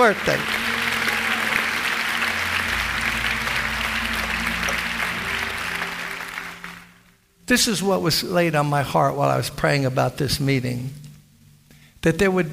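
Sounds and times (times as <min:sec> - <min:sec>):
speech: 0:00.0 - 0:00.6, 0:07.5 - 0:11.0, 0:12.0 - 0:12.5
audience applause: 0:00.0 - 0:07.1.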